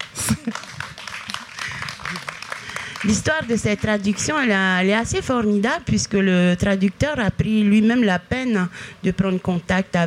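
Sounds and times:
audience applause: 0:00.0 - 0:04.4
speech: 0:00.4 - 0:00.6, 0:03.0 - 0:10.0.

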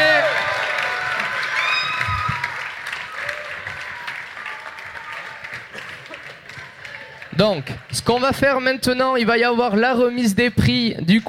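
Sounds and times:
audience applause: 0:00.0 - 0:08.7
speech: 0:07.4 - 0:11.2.

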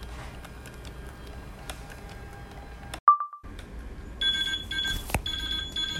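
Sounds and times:
infusion pump end-of-infusion alarm beeping: 0:04.2 - 0:05.9.

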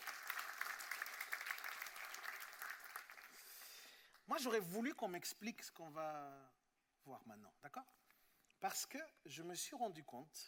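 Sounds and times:
audience clapping: 0:00.0 - 0:04.3
speech: 0:04.3 - 0:08.0, 0:08.6 - 0:10.4.

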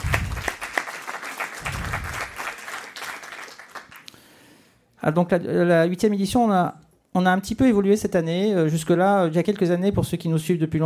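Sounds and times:
audience applause: 0:00.0 - 0:04.1
speech: 0:05.0 - 0:10.8.

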